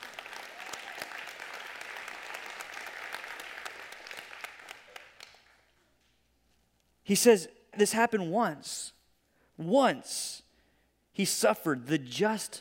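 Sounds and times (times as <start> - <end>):
audience applause: 0.0 - 5.6
speech: 7.1 - 9.0, 9.6 - 10.4, 11.2 - 12.5.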